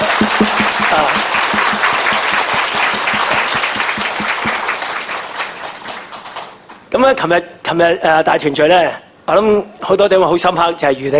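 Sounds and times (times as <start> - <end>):
audience applause: 0.0 - 6.6
speech: 7.0 - 11.1.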